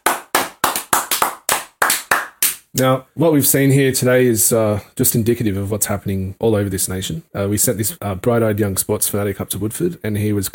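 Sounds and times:
hand clapping: 0.0s - 2.8s
speech: 2.8s - 10.5s.

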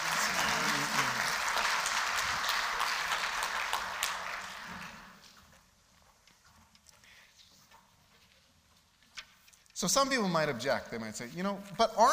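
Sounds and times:
audience applause: 0.0s - 5.2s
speech: 9.8s - 12.1s.

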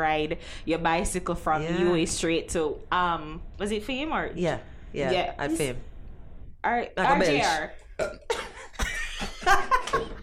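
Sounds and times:
speech: 0.0s - 5.9s, 6.6s - 8.3s, 9.4s - 10.1s
woman belching: 7.3s - 8.4s.

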